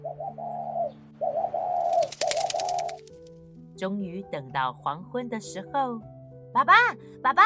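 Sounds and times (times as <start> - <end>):
dove cooing in soft rounded phrases: 0.0 - 3.2
rapid rustling flutter-like bursts: 1.8 - 3.4
speech: 3.8 - 7.4.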